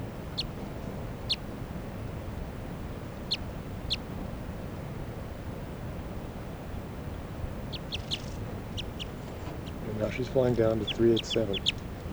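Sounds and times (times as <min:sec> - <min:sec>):
wind rumble: 0:00.2 - 0:12.1
wild crossbill call notes: 0:07.1 - 0:12.1
speech: 0:10.2 - 0:11.8.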